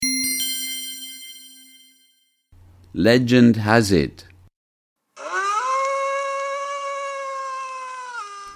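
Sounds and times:
speech: 0:03.0 - 0:04.3
dog howling with high mournful pitch: 0:05.2 - 0:08.5.

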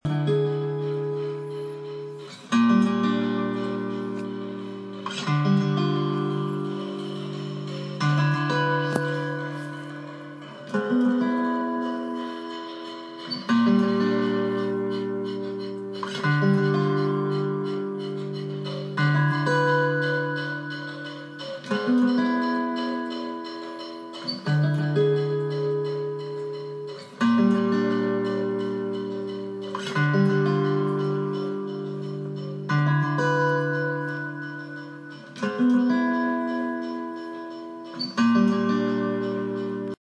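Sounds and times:
percussion overdub: 0:00.1 - 0:40.0.

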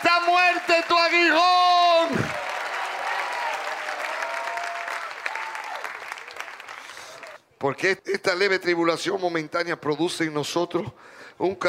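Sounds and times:
loud audience applause: 0:00.0 - 0:07.4
speech: 0:07.6 - 0:11.6.

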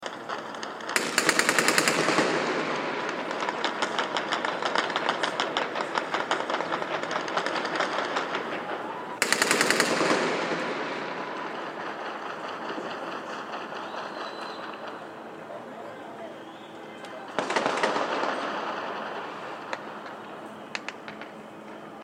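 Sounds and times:
celebratory gunfire at Gaza ceasefire: 0:00.0 - 0:22.0.

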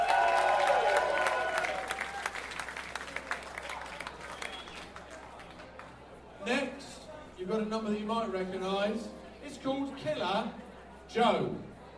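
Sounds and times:
audience cheering: 0:00.0 - 0:05.0
audience applause: 0:00.0 - 0:06.0
speech: 0:07.5 - 0:11.7.

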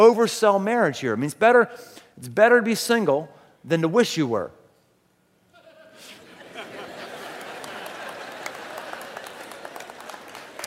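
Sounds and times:
speech: 0:00.0 - 0:04.6
laughter: 0:05.5 - 0:10.6
audience clapping: 0:06.7 - 0:10.6.

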